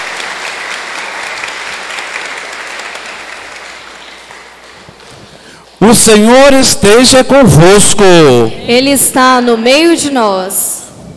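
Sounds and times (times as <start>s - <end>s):
audience applause: 0.0s - 5.5s
speech: 5.8s - 10.7s.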